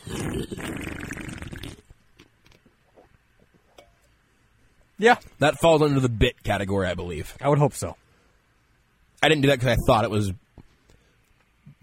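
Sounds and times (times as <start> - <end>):
loud slurping of soda: 0.0 - 1.9
speech: 5.0 - 8.0, 9.2 - 10.4.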